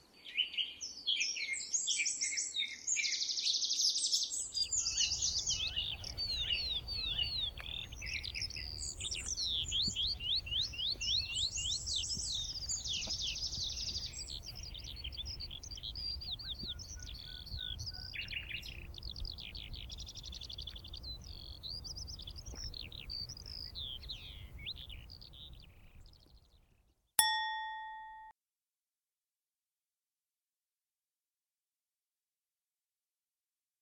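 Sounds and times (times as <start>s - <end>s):
birds in Pont Pean: 0.2s - 27.0s.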